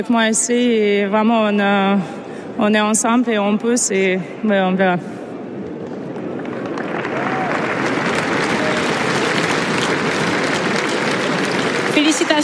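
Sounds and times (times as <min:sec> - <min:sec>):
speech: 0:00.0 - 0:05.2
audience applauding in tennis stadium: 0:06.1 - 0:12.4.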